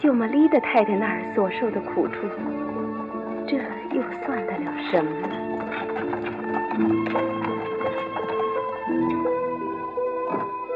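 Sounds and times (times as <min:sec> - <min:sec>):
speech: 0:00.1 - 0:02.8, 0:03.5 - 0:05.8, 0:06.8 - 0:07.3
horse-drawn carriage hooves clip-clopping: 0:02.2 - 0:10.6.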